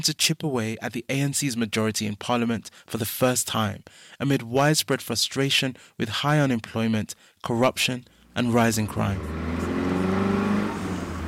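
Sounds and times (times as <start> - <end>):
speech: 0.0 - 9.7
minibus engine creeping through gridlock traffic between Alex and Sandton: 8.2 - 11.2.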